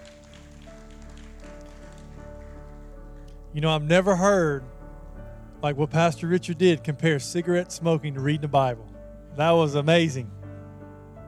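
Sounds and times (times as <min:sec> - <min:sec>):
applause: 0:00.0 - 0:03.8
speech: 0:03.6 - 0:04.7, 0:05.6 - 0:10.4.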